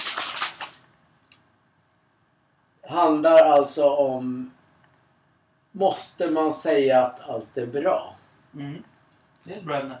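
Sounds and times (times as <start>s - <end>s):
flipping pages in a binder: 0.0s - 0.9s
speech: 2.9s - 4.6s, 5.8s - 9.9s.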